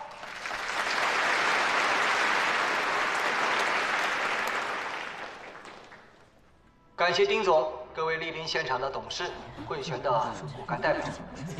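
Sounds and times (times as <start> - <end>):
warm audience applause: 0.0 - 6.3
speech: 7.0 - 11.5
laughter: 9.1 - 11.5.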